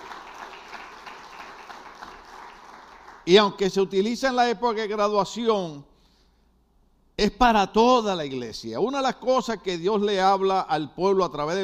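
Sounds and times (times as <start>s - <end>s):
audience applause: 0.0s - 3.3s
speech: 3.3s - 5.9s, 7.2s - 11.6s.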